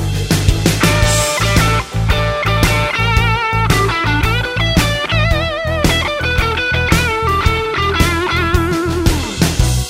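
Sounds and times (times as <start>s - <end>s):
roadhouse guitar licks: 0.1s - 9.7s.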